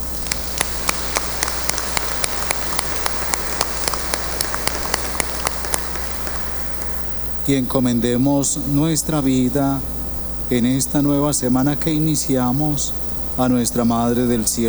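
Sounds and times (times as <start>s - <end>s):
audience applause: 0.2s - 7.1s
speech: 7.5s - 14.6s.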